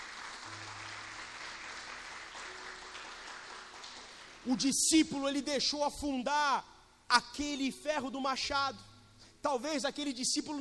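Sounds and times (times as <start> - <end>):
audience applauding: 0.0 - 4.5
speech: 4.4 - 10.5.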